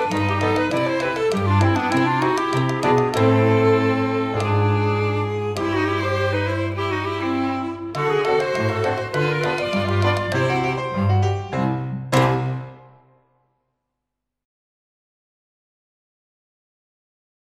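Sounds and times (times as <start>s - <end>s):
ragtime playback: 0.0s - 13.1s.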